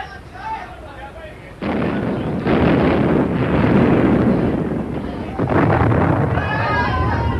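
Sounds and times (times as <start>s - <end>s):
voices: 0.0s - 2.7s, 3.8s - 7.3s
naval gun salvos firing from a warship: 1.6s - 7.3s.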